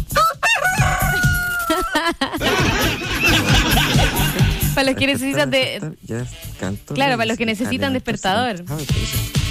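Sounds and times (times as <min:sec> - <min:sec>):
rooster crowing: 0:00.2 - 0:02.0
laughter: 0:01.6 - 0:05.8
speech: 0:04.8 - 0:09.4.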